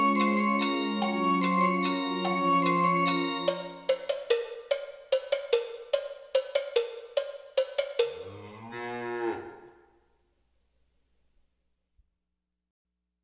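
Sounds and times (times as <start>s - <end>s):
cowbells: 0.0s - 8.6s.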